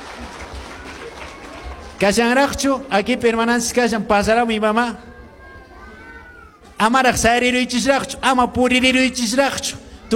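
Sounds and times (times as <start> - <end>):
congregation clapping during a church service: 0.0 - 3.5
speech: 2.0 - 5.1, 6.8 - 10.1.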